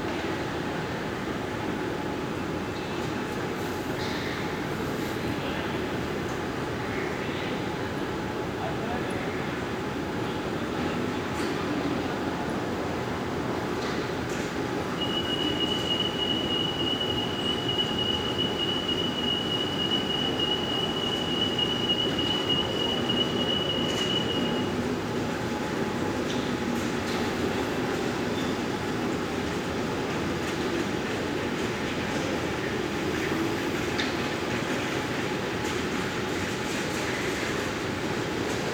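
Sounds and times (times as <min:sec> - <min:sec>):
Istanbul Airport ambience: 0:00.0 - 0:38.7.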